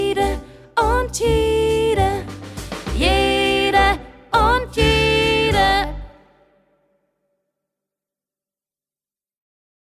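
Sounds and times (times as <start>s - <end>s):
soprano voice: 0.0s - 6.3s.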